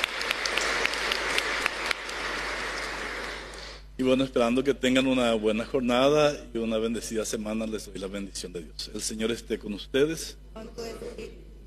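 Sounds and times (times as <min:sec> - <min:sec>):
audience applauding: 0:00.0 - 0:03.8
speech: 0:04.0 - 0:10.9.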